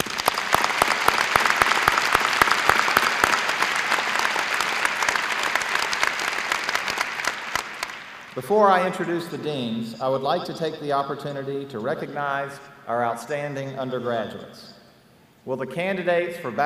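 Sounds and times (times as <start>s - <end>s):
crowd applauding graduate students: 0.0s - 8.4s
speech: 8.4s - 14.8s, 15.4s - 16.6s.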